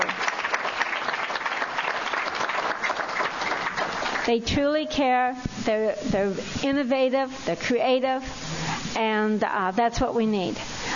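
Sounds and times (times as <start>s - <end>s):
room full of people clapping: 0.0s - 4.4s
speech: 4.2s - 10.7s.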